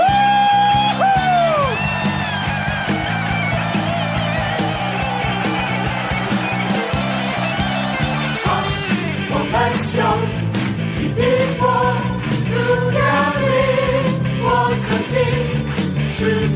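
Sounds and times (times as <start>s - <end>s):
excited shouts: 0.0s - 9.1s
crowd cheering and applauding: 0.0s - 16.5s
sustained music: 0.0s - 16.5s.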